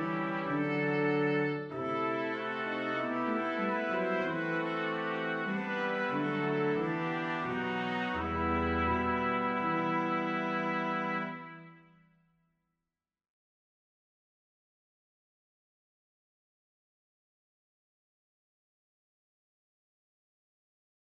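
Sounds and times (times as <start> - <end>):
brass quintet playing: 0.0 - 11.8.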